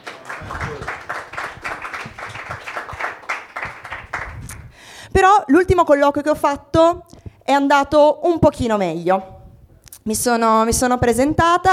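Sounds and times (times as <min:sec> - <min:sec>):
audience applause: 0:00.0 - 0:04.7
speech: 0:05.2 - 0:09.3, 0:10.0 - 0:11.7.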